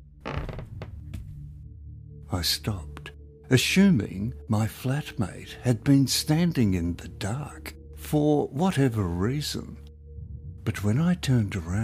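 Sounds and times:
floor creaking: 0.2 - 1.5
speech: 2.3 - 2.9, 3.5 - 9.8, 10.6 - 11.8.

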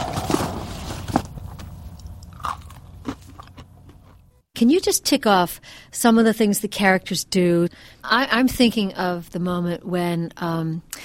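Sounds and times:
dry crunchy chewing of dog kibble: 0.0 - 4.4
low hum: 0.0 - 10.8
speech: 4.6 - 11.0.

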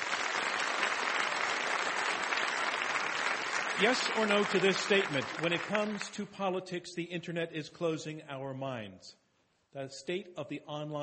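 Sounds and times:
audience applause: 0.0 - 6.1
speech: 3.8 - 11.0.

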